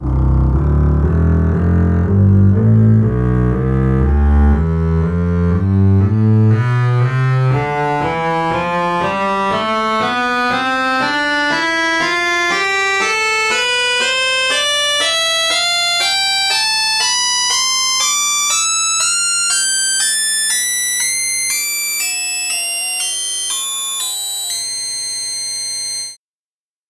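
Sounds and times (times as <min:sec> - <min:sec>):
double bass playing a scale: 0:00.0 - 0:20.2.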